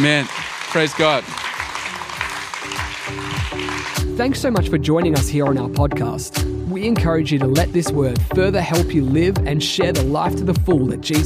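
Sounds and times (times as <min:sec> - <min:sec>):
speech: 0:00.0 - 0:01.4, 0:03.1 - 0:11.2
audience applause: 0:00.0 - 0:04.1.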